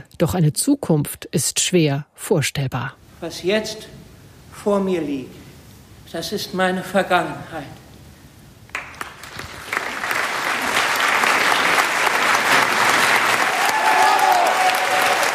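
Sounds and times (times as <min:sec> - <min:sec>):
speech: 0:00.0 - 0:04.0, 0:04.6 - 0:05.4, 0:06.1 - 0:07.8
theatre audience applause: 0:08.7 - 0:15.3.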